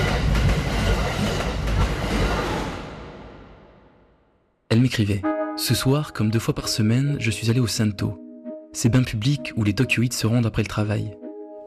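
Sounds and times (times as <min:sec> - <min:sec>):
subway train cars rolling on rails: 0:00.0 - 0:02.9
speech: 0:04.7 - 0:11.2.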